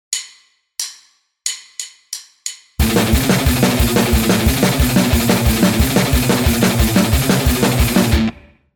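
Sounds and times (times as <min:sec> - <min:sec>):
guitar riff: 0:02.8 - 0:08.6.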